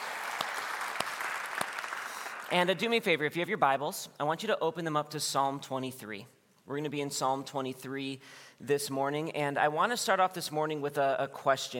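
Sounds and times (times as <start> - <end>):
crowd clapping: 0.0 - 2.6
speech: 2.5 - 11.7.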